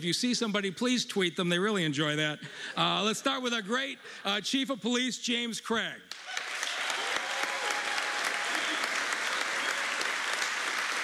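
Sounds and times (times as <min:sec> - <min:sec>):
speech: 0:00.0 - 0:06.2
audience applause: 0:06.1 - 0:11.0.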